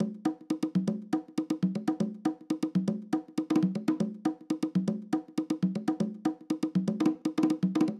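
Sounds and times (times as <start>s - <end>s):
conga loop in nu jazz house style: 0.0s - 7.9s.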